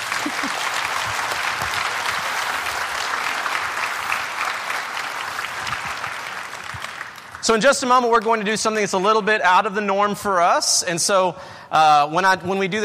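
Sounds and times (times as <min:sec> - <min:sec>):
audience applause: 0:00.0 - 0:07.7
speech: 0:00.2 - 0:00.6, 0:07.5 - 0:12.8.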